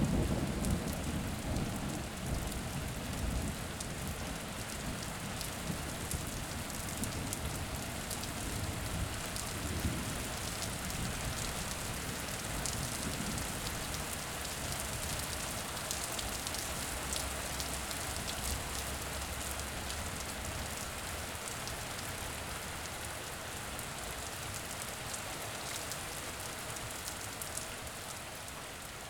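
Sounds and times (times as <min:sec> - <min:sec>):
storm: 0:00.0 - 0:04.2
rain: 0:00.0 - 0:29.0.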